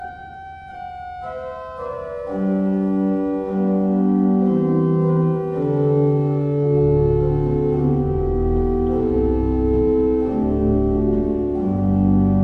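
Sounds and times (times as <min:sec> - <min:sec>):
used Walcker pipe organ: 0:00.0 - 0:12.4.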